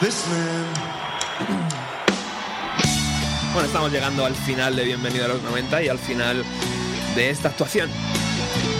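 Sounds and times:
audience booing at a concert: 0:00.0 - 0:05.1
speech: 0:00.1 - 0:01.6, 0:03.6 - 0:08.7.

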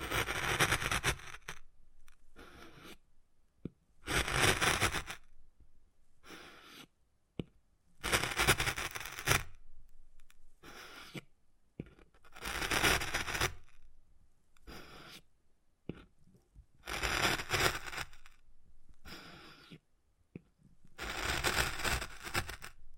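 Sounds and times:
wood carving scraping and scratching: 0:00.0 - 0:03.0, 0:04.0 - 0:05.3, 0:06.3 - 0:07.0, 0:08.0 - 0:09.6, 0:10.2 - 0:13.8, 0:14.6 - 0:15.3, 0:16.8 - 0:18.4, 0:19.0 - 0:19.8, 0:20.9 - 0:22.8.

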